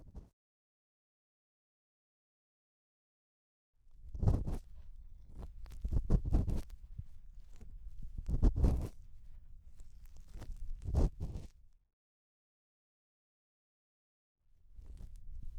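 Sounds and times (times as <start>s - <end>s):
bamboo ear pick scratching deep in the left ear: 4.3s - 11.5s.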